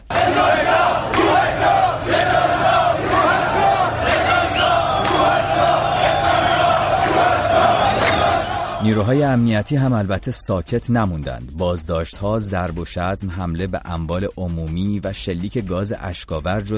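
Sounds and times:
large crowd chanting protest slogans: 0:00.0 - 0:08.8
speech: 0:08.8 - 0:16.7.

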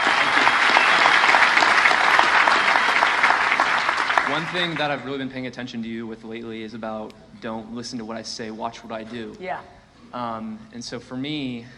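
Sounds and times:
round of applause: 0:00.0 - 0:05.2
speech: 0:04.4 - 0:11.7.

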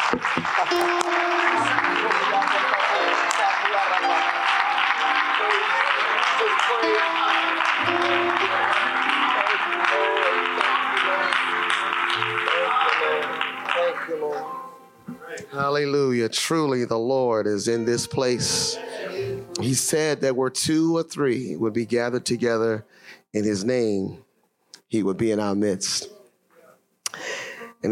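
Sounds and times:
audience applause: 0:00.0 - 0:14.4
steady organ or keyboard chords: 0:00.0 - 0:20.4
speech: 0:00.1 - 0:10.0, 0:15.4 - 0:24.3, 0:24.9 - 0:26.2.

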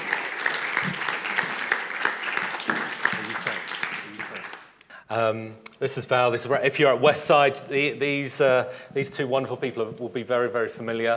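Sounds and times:
audience applause: 0:00.0 - 0:04.8
speech: 0:05.1 - 0:11.1.

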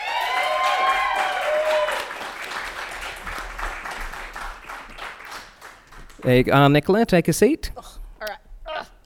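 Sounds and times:
live audience at a film review show applauding a guest: 0:00.0 - 0:06.2
speech: 0:06.2 - 0:08.0.

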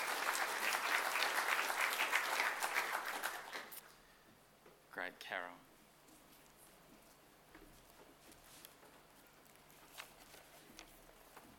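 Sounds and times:
church congregation applauding during a service: 0:00.0 - 0:03.8
speech: 0:05.3 - 0:05.7.

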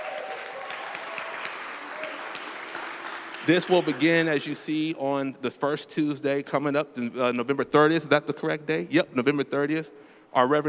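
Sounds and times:
crowd clapping: 0:00.0 - 0:04.6
speech: 0:03.4 - 0:10.6.

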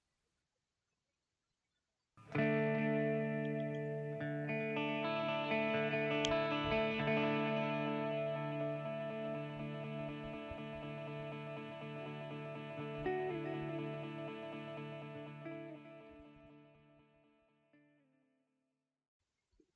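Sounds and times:
rock band song with effects-laden electric guitar chords: 0:02.2 - 0:16.4.

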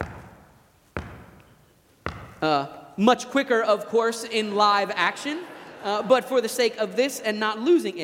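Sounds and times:
basketball dribbling crossover between hands: 0:00.0 - 0:02.6
speech: 0:02.4 - 0:08.0
laughter: 0:04.0 - 0:08.0.

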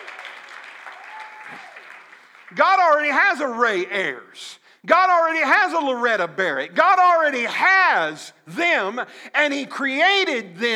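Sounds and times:
audience applause: 0:00.0 - 0:02.6
speech: 0:02.5 - 0:10.7.

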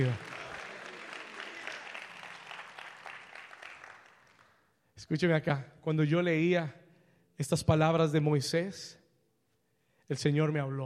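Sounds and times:
speech: 0:00.0 - 0:00.3, 0:05.0 - 0:06.8, 0:07.4 - 0:09.0, 0:10.1 - 0:10.8
audience applause: 0:00.0 - 0:04.6.

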